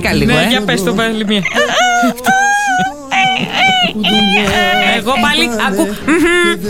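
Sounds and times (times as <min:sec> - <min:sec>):
speech: 0:00.0 - 0:02.9, 0:04.0 - 0:06.6
laughter: 0:00.4 - 0:06.6
human voice imitating a dolphin: 0:01.3 - 0:05.6.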